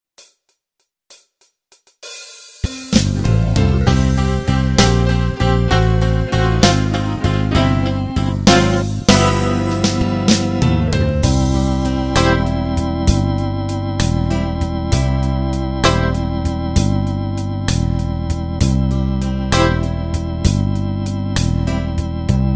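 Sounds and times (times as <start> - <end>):
blues music: 2.0 - 22.5.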